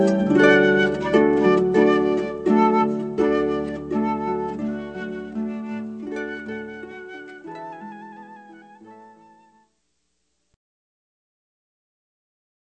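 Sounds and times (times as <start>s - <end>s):
flute: 0.0s - 9.7s
harp: 0.0s - 9.7s.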